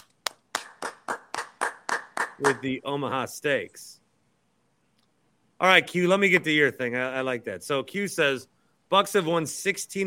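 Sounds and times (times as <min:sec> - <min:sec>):
round of applause: 0:00.0 - 0:02.6
speech: 0:02.4 - 0:04.0, 0:05.6 - 0:10.0.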